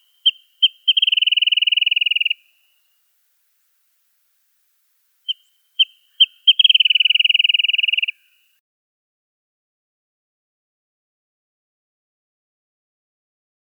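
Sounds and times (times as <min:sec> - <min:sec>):
wrentit chirping: 0:00.0 - 0:02.8, 0:05.3 - 0:08.5.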